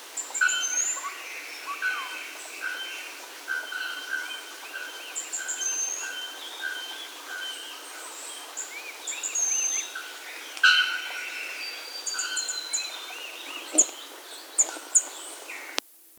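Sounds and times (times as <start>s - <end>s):
bird calls: 0.0s - 15.8s
background hiss: 0.0s - 16.1s.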